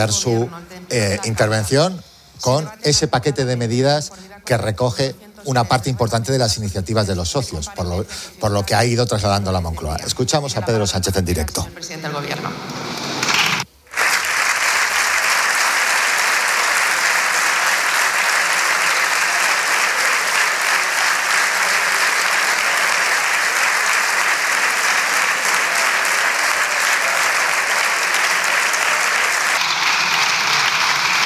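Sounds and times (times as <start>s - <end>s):
speech: 0.0s - 13.0s
standing ovation in parliament: 13.8s - 31.2s.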